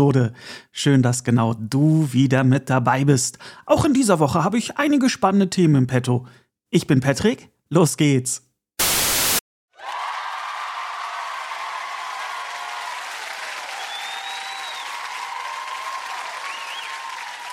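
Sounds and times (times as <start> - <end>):
speech: 0.0 - 8.5
applause: 9.7 - 17.5.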